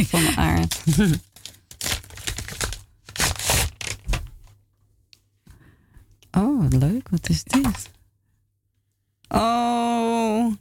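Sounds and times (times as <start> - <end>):
speech: 0.0 - 1.3, 6.3 - 8.0, 9.3 - 10.5
wrapping paper crinkling and tearing as a gift is unwrapped: 0.1 - 4.3.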